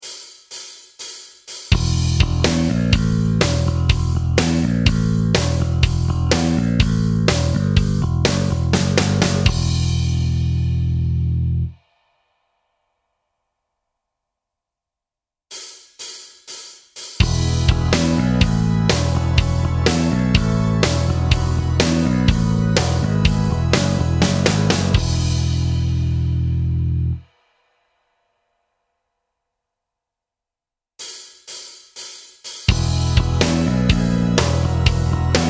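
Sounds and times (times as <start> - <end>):
backing track: 1.7 - 11.2, 17.2 - 27.2, 32.7 - 35.4.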